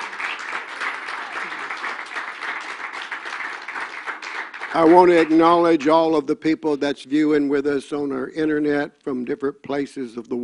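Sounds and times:
audience hand clapping in praise: 0.0 - 6.0
speech: 4.7 - 10.4.

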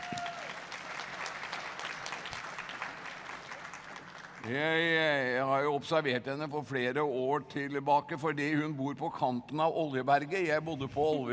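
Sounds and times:
applause: 0.0 - 4.6
speech: 4.5 - 11.3.

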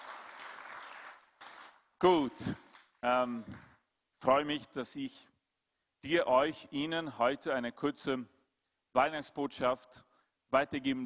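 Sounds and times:
audience applause: 0.0 - 1.8
speech: 2.0 - 5.3, 6.0 - 8.4, 9.0 - 11.0.

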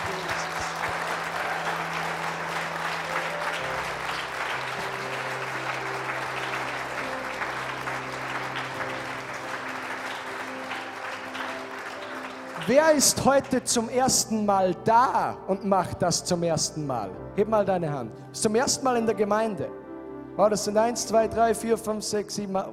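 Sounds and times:
audience applause: 0.0 - 13.9
speech: 12.7 - 19.8, 20.4 - 22.7.

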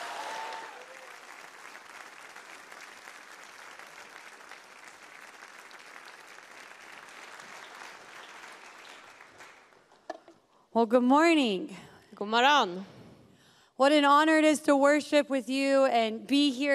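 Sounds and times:
congregation applause during a Livets Ord church service: 0.0 - 9.9
speech: 10.8 - 12.9, 13.8 - 16.7.

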